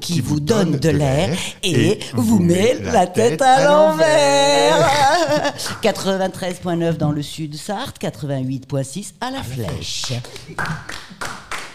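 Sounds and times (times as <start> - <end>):
speech: 0.0 - 11.3
laughter: 1.8 - 6.3
audience slow handclaps: 9.6 - 11.7.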